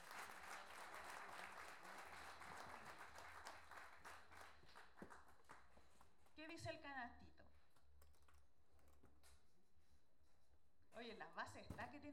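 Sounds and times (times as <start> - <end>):
audience applause for a contest participant: 0.0 - 5.6
speech: 6.6 - 7.4, 11.0 - 12.1.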